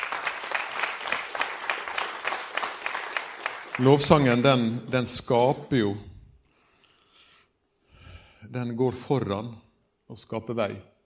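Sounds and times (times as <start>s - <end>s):
audience applause: 0.0s - 4.6s
speech: 3.8s - 6.1s, 8.5s - 10.9s.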